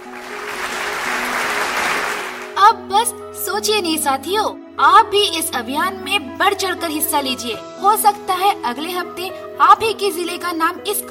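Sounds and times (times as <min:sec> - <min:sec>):
audience applause: 0:00.0 - 0:02.6
speech: 0:02.7 - 0:11.1.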